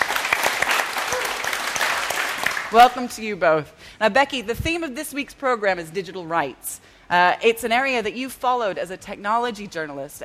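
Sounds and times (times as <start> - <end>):
audience applause welcoming a guest on stage: 0.0 - 2.8
speech: 2.7 - 10.2.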